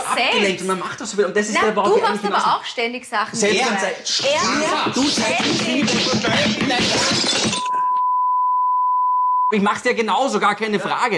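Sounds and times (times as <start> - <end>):
speech: 0.2 - 7.8, 9.5 - 11.1
dishes and glassware clattering while loading a dishwasher: 5.5 - 7.8
steady high beep tone: 7.5 - 9.6.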